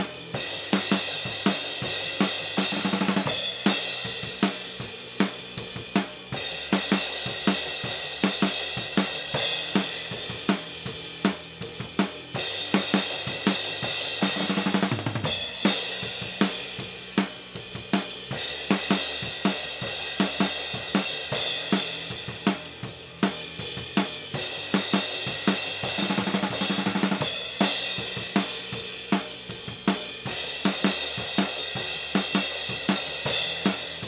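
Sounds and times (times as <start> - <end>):
snare drum: 0.0 - 5.4, 6.0 - 16.6, 17.2 - 34.0.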